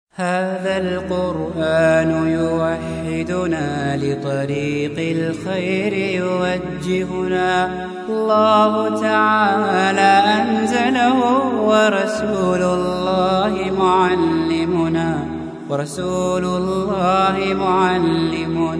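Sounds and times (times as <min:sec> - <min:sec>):
Islamic music: 0:00.1 - 0:18.7.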